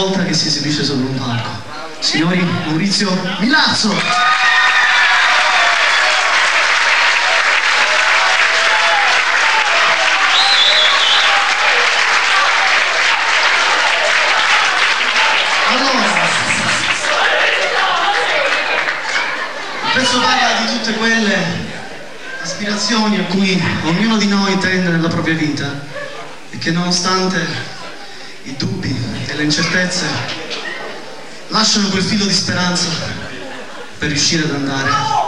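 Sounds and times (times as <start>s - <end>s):
speech: 0.0s - 4.4s, 22.6s - 27.8s, 28.4s - 30.4s, 31.5s - 33.2s, 34.0s - 35.2s
audience applause for a performer: 4.0s - 21.4s
laughter: 4.8s - 24.2s, 25.7s - 26.5s, 27.4s - 28.4s, 29.2s - 32.0s, 32.7s - 34.3s.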